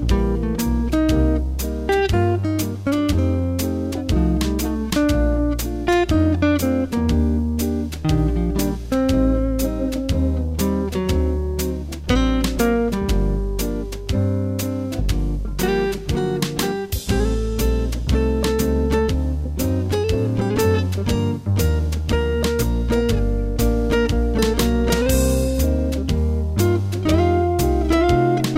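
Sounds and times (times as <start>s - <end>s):
jazz guitar melody: 0.0s - 28.5s.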